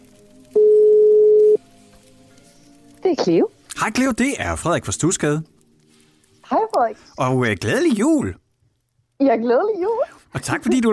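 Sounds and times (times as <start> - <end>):
faint hiss: 0.0 - 10.9
telephone ringback tone of outgoing call: 0.6 - 1.6
speech: 3.2 - 5.5, 6.5 - 8.4, 9.2 - 10.9.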